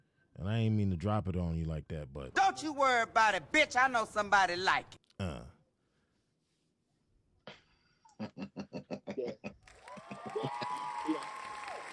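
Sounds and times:
speech: 0:00.4 - 0:05.0
applause: 0:09.6 - 0:11.9.

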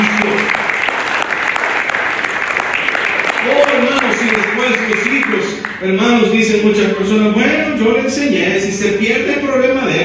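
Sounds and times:
large crowd applause: 0:00.0 - 0:05.8
speech: 0:05.8 - 0:10.0.

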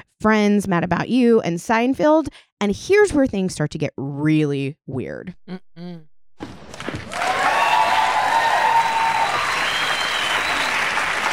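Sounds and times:
speech: 0:00.2 - 0:06.5
sitcom studio audience entrance applause: 0:06.7 - 0:11.3
faint cheering: 0:07.1 - 0:11.3.

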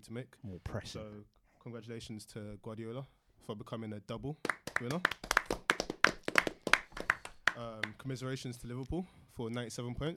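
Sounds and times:
speech: 0:00.0 - 0:05.3, 0:07.6 - 0:10.1
hands clapping: 0:04.4 - 0:08.1.

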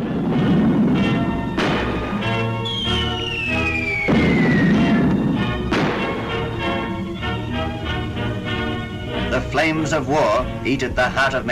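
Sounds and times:
bombs exploding in an air raid: 0:00.0 - 0:08.2
speech: 0:09.6 - 0:11.5.

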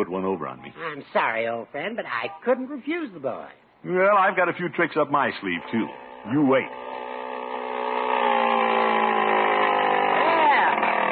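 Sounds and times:
speech: 0:00.0 - 0:07.0
small motor fitted to a bicycle running: 0:05.4 - 0:11.1.

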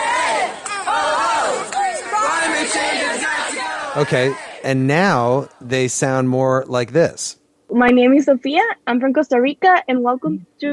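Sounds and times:
young people chanting and shouting at a climate strike: 0:00.0 - 0:06.0
speech: 0:04.0 - 0:10.7.

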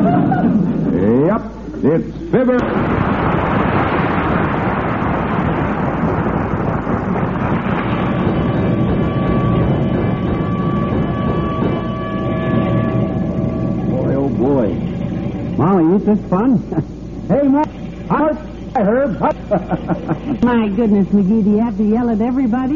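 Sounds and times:
laughter: 0:00.0 - 0:01.0, 0:18.8 - 0:20.8
fire engine motor and road noise: 0:00.0 - 0:22.7
sustained whining tone: 0:00.0 - 0:22.7
brief upward-sweeping notes: 0:07.8 - 0:22.4
speech: 0:16.1 - 0:16.9, 0:20.7 - 0:22.7.

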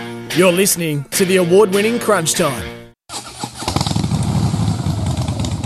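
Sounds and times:
speech: 0:00.4 - 0:02.8
Harley Davidson motorcycle engine revving: 0:03.1 - 0:05.6.

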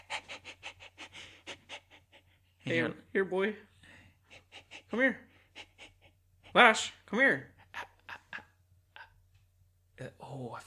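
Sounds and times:
dog panting: 0:00.0 - 0:02.8, 0:03.9 - 0:06.6
speech: 0:02.7 - 0:03.7, 0:04.9 - 0:05.3, 0:06.5 - 0:07.5, 0:10.4 - 0:10.6.

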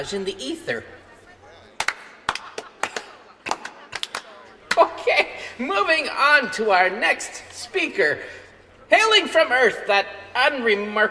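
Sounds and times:
speech: 0:00.0 - 0:01.0, 0:04.8 - 0:11.0
laughter: 0:00.9 - 0:06.0
scattered hand claps: 0:01.8 - 0:04.9.

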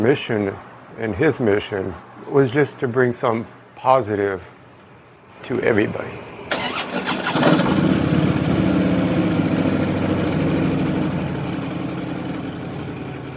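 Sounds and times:
speech: 0:00.0 - 0:04.5, 0:05.4 - 0:06.3
motorcycle engine running: 0:06.7 - 0:13.3.

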